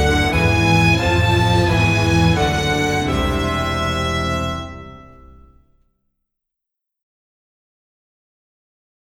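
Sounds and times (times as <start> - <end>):
string instruments playing high and low: 0.0 - 5.6.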